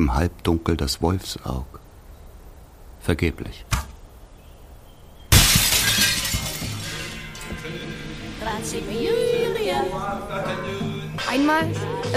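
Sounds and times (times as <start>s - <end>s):
speech: 0.0s - 1.8s, 3.0s - 3.8s, 8.4s - 12.1s
mirror glass shattering: 5.2s - 8.2s
glass fragments tinkling and clattering: 5.3s - 7.8s.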